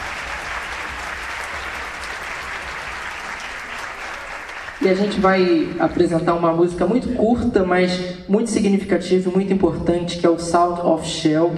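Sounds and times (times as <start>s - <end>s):
concert audience applause honouring the music teachers among the orchestra's musicians: 0.0s - 6.0s
speech: 4.8s - 11.5s.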